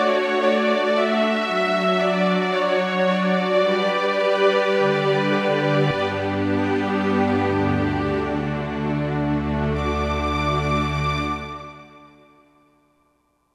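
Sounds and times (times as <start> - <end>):
silky strings patch on a Roland JD-990 synthesizer: 0.0 - 12.4.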